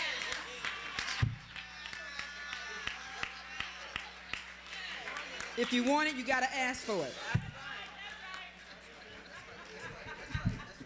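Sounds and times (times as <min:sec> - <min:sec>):
audience clapping: 0:00.0 - 0:06.4, 0:07.7 - 0:08.8
speech: 0:05.6 - 0:07.4
laughter: 0:07.3 - 0:10.8.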